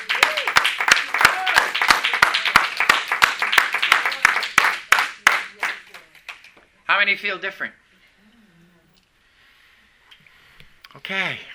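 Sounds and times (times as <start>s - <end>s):
crowd clapping: 0.0s - 6.6s
speech: 7.0s - 7.8s, 11.1s - 11.5s.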